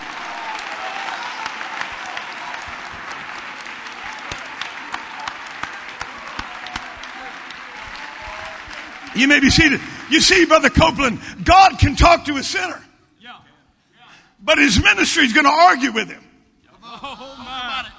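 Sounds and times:
audience clapping hands: 0.0s - 11.2s
speech: 9.2s - 12.8s, 14.5s - 16.2s
laughter: 16.7s - 17.9s.

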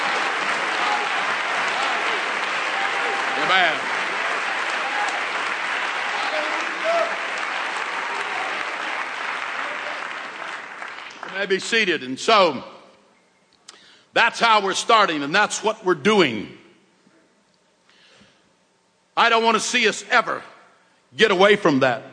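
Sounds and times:
audience applauding: 0.0s - 11.8s
speech: 3.5s - 3.9s, 11.4s - 12.7s, 14.2s - 16.6s, 19.2s - 20.5s, 21.1s - 22.1s.

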